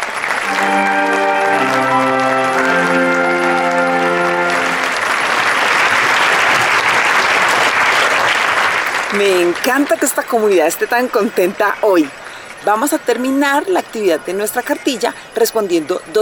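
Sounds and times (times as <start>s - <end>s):
audience applause: 0.0s - 10.3s
speech: 9.2s - 16.1s.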